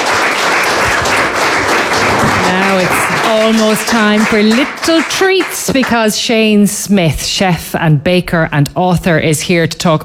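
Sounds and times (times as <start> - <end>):
audience applauding the musicians: 0.0 - 6.0
speech: 2.6 - 10.0.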